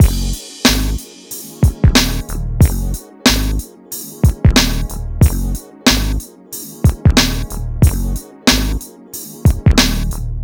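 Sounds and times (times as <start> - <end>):
hip hop and R&B drum loops: 0.0 - 10.2.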